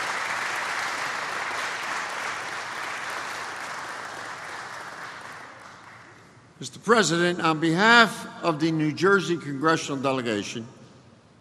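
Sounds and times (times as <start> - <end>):
crowd applause: 0.0 - 6.2
speech: 6.6 - 10.8.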